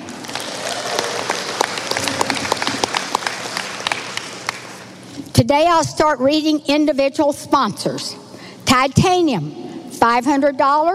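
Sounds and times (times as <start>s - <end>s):
audience applause: 0.0s - 4.8s
speech: 5.4s - 10.9s.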